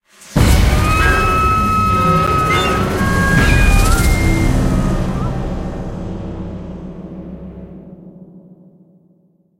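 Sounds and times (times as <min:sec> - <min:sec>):
terror music sting: 0:00.4 - 0:08.2.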